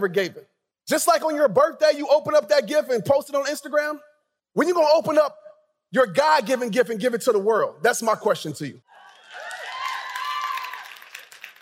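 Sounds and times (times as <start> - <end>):
speech: 0.0 - 8.9
high cheering voices: 8.9 - 11.3
audience clapping: 9.0 - 11.5.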